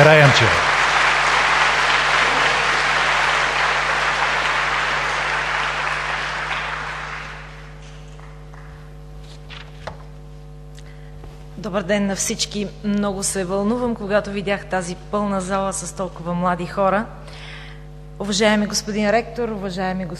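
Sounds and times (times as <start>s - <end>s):
speech: 0.0s - 0.7s, 11.8s - 17.4s, 18.2s - 20.1s
audience applause in a hall: 0.0s - 8.8s
low steady hum: 0.0s - 20.1s.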